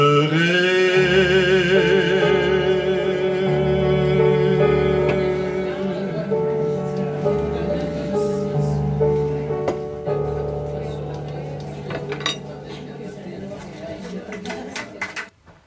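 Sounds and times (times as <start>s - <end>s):
people talking together: 0.3s - 15.3s
cutlery and dishes clinking at a dinner party: 11.2s - 15.4s.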